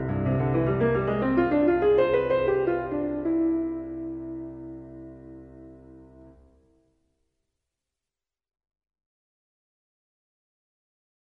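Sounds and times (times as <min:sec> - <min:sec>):
prelude and fugue: 0:00.0 - 0:06.3.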